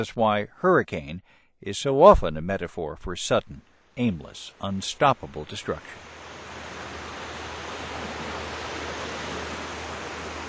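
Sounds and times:
speech: 0.0 - 6.1
soft waves rolling on the beaches of Bay St. Louis, Mississippi: 3.9 - 10.4.

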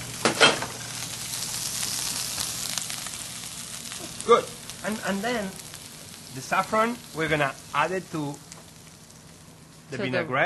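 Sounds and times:
lobster searing in a pan with olive oil: 0.0 - 10.4
speech: 4.2 - 5.6, 6.3 - 8.4, 9.9 - 10.4.

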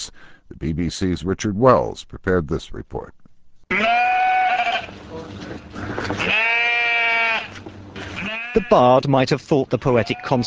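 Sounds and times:
speech: 0.0 - 3.2, 8.6 - 10.4
ewes bleating: 3.7 - 5.0, 6.0 - 9.0, 9.9 - 10.4.

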